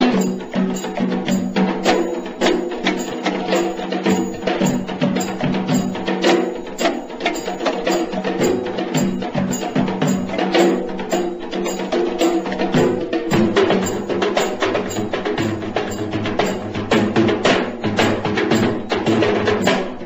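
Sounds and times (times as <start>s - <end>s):
Sri Lankan traditional ringtone: 0.0s - 20.0s.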